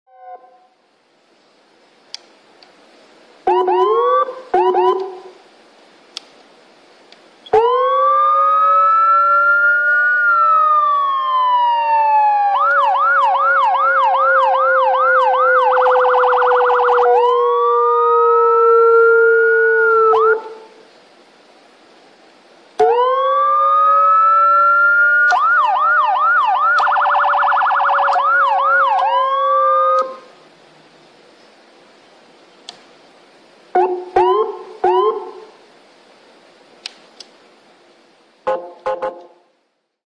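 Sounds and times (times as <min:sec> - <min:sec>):
Whelen dual-tone siren: 0:00.1 - 0:00.8, 0:03.4 - 0:05.4, 0:07.5 - 0:20.7, 0:22.8 - 0:30.3, 0:33.8 - 0:35.6, 0:38.5 - 0:39.3.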